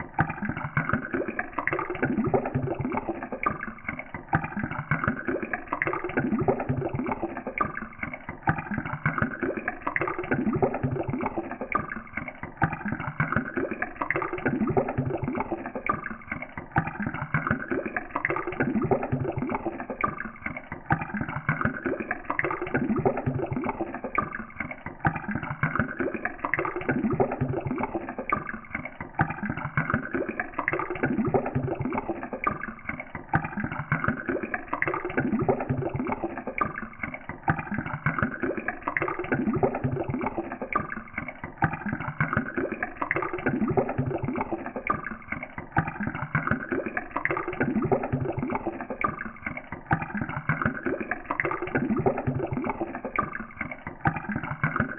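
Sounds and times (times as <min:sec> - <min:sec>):
sped-up bubbles: 0:00.0 - 0:54.9.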